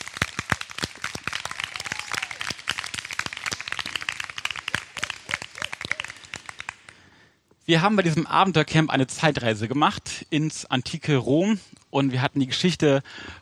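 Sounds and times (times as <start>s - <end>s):
audience applause for camp staff: 0.0s - 7.0s
faint voices and whoops: 1.4s - 2.6s, 5.0s - 6.3s
speech: 7.7s - 13.4s.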